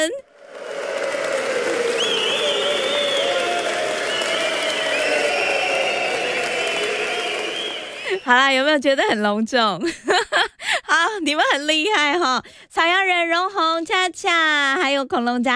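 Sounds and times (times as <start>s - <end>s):
speech: 0.0s - 0.2s, 8.3s - 10.4s, 11.0s - 15.5s
hundred people clapping and cheering: 0.0s - 8.4s.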